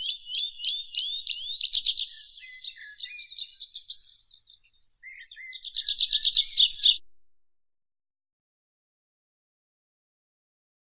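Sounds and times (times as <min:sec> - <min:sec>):
Anthus trivialis singing: 0:00.0 - 0:07.0.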